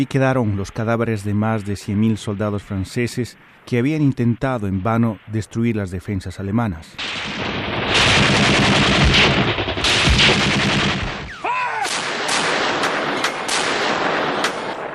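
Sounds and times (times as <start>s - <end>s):
speech: 0.0s - 7.6s, 10.3s - 10.9s
First World War artillery cannon fire from massed batteries: 7.0s - 14.9s.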